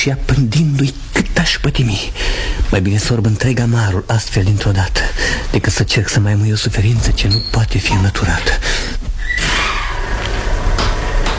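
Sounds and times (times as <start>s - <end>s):
speech: 0.0s - 8.9s
door opening: 7.0s - 11.3s.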